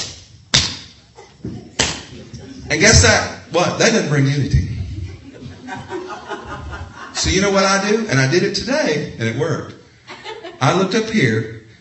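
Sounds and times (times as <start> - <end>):
laughter: 1.2 - 3.1, 4.6 - 7.6, 10.1 - 11.0
hands clapping off the beat: 1.8 - 2.1
speech: 2.4 - 4.7, 7.2 - 9.8, 10.6 - 11.6.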